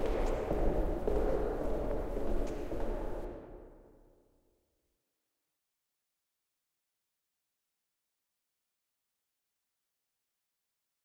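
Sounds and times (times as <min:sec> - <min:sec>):
footsteps: 0:00.0 - 0:03.4.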